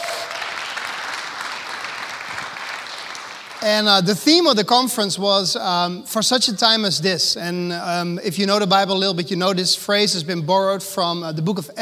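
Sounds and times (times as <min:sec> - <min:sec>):
church audience clapping: 0:00.0 - 0:04.4
speech: 0:03.6 - 0:11.8.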